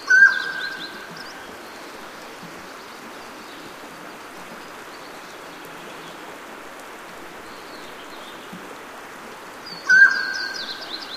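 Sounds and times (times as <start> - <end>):
Mountain Quail calling in North America: 0.1 - 1.2, 9.9 - 11.0.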